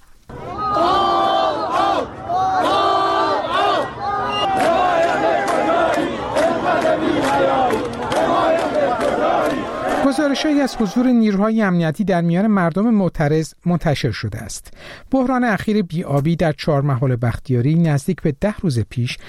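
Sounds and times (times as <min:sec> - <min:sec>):
protest crowd chanting slogans: 0:00.3 - 0:11.0
speech: 0:10.2 - 0:19.2.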